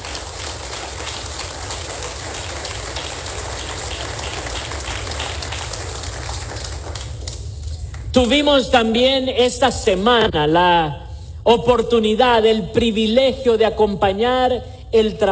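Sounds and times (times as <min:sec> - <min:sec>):
crowd applause: 0:00.0 - 0:08.0
speech: 0:08.2 - 0:15.3.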